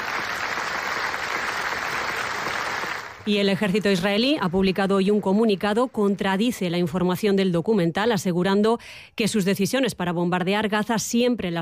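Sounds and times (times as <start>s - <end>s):
standing ovation applause at film festival: 0.0s - 6.2s
speech: 3.2s - 11.5s.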